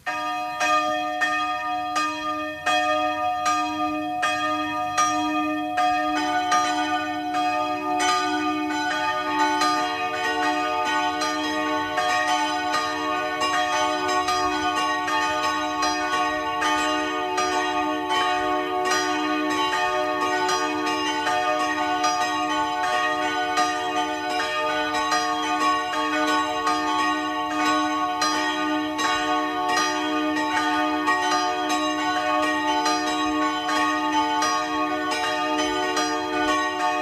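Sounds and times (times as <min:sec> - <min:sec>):
noon bells of a branch church in Rohr, southern Burgenland, pealing: 0:00.0 - 0:37.0.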